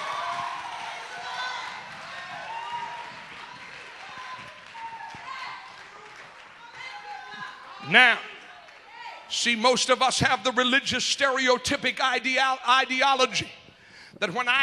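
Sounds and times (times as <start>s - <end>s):
audience clapping hands: 0.0s - 9.1s
speech: 7.9s - 8.3s, 9.3s - 13.6s, 14.2s - 14.6s.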